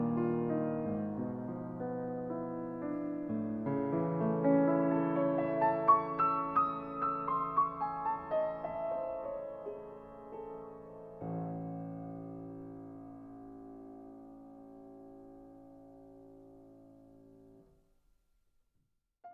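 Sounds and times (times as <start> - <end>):
fantasia: 0.0 - 15.2.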